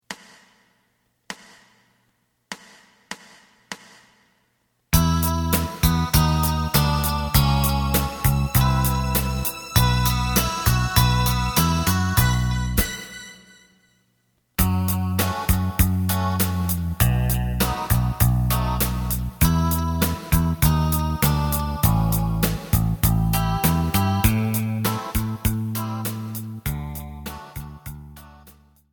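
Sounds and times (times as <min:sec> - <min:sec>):
lead melody: 0:05.0 - 0:13.8, 0:14.6 - 0:28.6.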